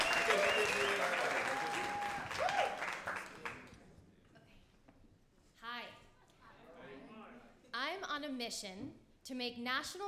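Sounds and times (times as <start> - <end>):
whistles: 0.0 - 2.0
people cheering: 0.0 - 3.6
audience applause: 0.0 - 3.8
speech: 8.3 - 10.0.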